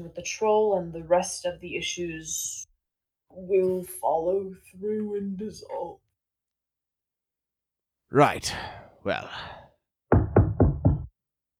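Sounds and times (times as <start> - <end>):
speech: 0.0 - 2.7, 3.3 - 6.0, 8.1 - 9.6
knocking at a door: 10.1 - 11.1.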